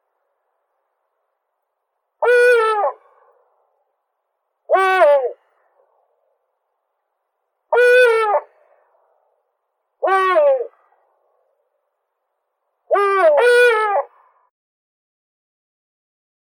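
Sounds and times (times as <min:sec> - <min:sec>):
Eurasian eagle-owl Bubo bubo: 0:02.2 - 0:03.0, 0:04.7 - 0:05.4, 0:07.7 - 0:08.5, 0:10.0 - 0:10.8, 0:12.9 - 0:14.1.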